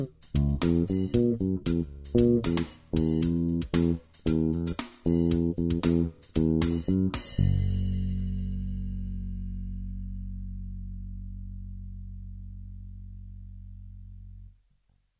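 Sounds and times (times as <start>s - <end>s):
drums: 0.0s - 9.2s
jazz bass guitar with treble turned down: 0.0s - 14.6s.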